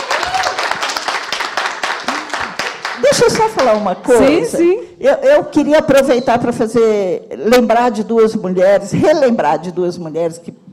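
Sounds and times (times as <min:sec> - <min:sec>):
round of applause for a guest at a gathering: 0:00.0 - 0:03.9
speech: 0:03.2 - 0:10.6.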